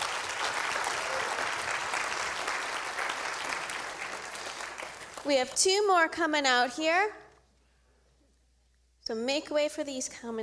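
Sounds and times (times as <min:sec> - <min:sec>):
church congregation clapping: 0:00.0 - 0:05.6
speech: 0:05.2 - 0:07.2, 0:09.1 - 0:10.4.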